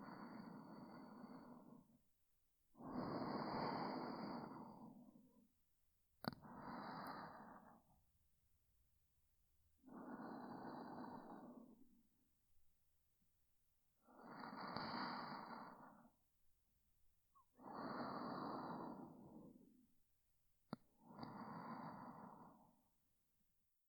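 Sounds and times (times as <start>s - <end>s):
person breathing in sleep: 0.0s - 2.0s, 2.8s - 5.4s, 6.3s - 8.0s, 9.8s - 12.0s, 14.0s - 16.2s, 17.4s - 19.8s, 21.0s - 22.9s.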